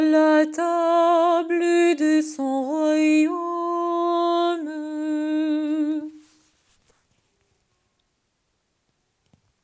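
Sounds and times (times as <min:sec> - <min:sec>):
psalm singing: 0:00.0 - 0:06.4.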